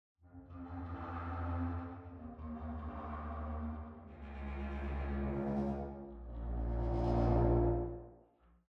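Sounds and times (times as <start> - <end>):
traditional contrabass ensemble with reverb: 0.4 - 8.1.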